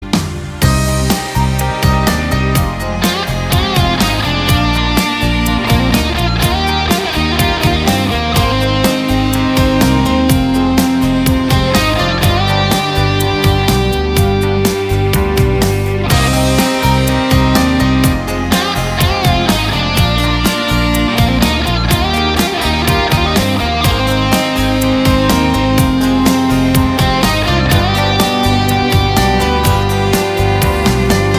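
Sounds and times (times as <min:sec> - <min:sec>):
instrumental melody: 0:00.0 - 0:31.3.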